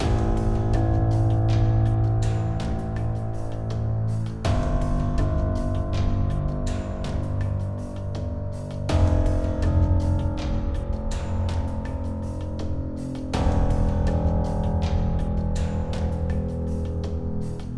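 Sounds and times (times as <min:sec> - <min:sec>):
bass line: 0:00.0 - 0:17.7.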